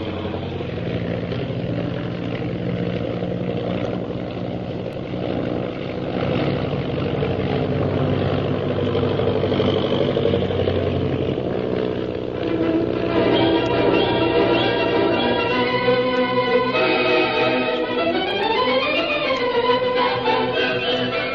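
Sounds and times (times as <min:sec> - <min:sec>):
propeller airplane engine droning in flight: 0:00.0 - 0:21.3.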